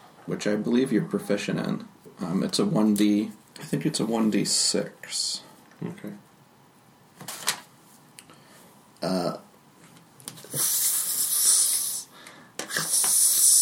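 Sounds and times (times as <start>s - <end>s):
speech: 0.3s - 6.3s, 9.0s - 9.4s
voice imitating a creature's hiss: 10.4s - 13.5s.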